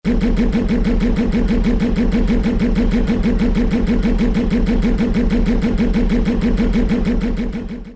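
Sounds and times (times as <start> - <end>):
podracer idling: 0.0 - 7.9.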